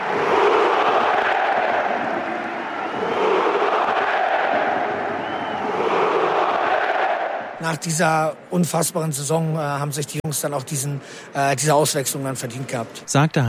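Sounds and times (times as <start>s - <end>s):
large stadium crowd applauding and cheering: 0.0s - 7.7s
speech: 7.6s - 13.4s.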